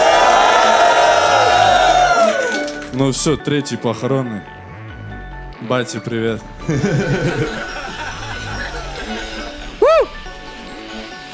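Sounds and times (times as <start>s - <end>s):
crowd cheering and shouting: 0.0s - 2.7s, 9.8s - 10.2s
speech: 3.0s - 4.6s, 5.6s - 7.7s
laughter: 6.6s - 10.0s.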